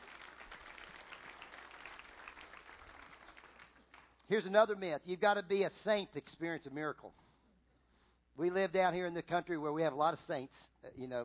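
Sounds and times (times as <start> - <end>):
audience applause: 0.0 - 4.1
speech: 4.3 - 7.2, 8.4 - 11.2.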